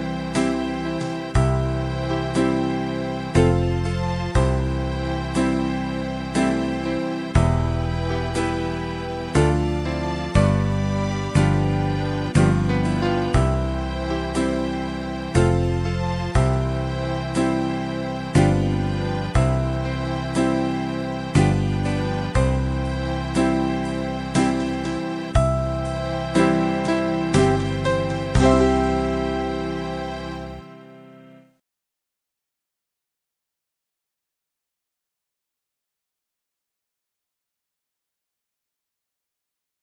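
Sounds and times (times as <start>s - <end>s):
backing track of folk song: 0.0s - 31.4s.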